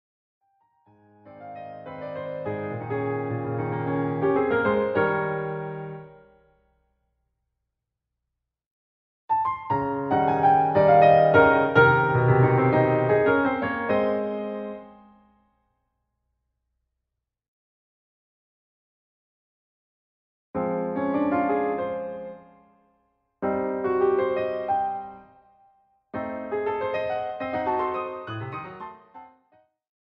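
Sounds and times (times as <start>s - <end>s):
piano accompaniment in A flat major: 0.9s - 6.6s, 9.3s - 15.4s, 20.6s - 22.8s, 23.4s - 29.6s.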